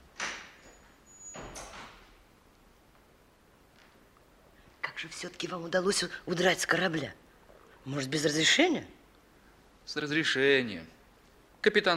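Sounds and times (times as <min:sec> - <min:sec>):
door closing: 0:00.1 - 0:02.2
speech: 0:05.0 - 0:07.2, 0:07.8 - 0:09.0, 0:09.9 - 0:11.0, 0:11.6 - 0:11.9.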